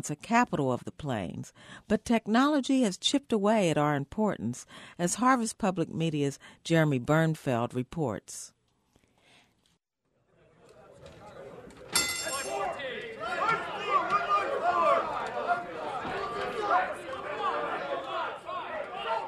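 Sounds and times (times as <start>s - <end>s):
speech: 0.0s - 8.6s
traders shouting orders on trading floor: 12.3s - 19.2s.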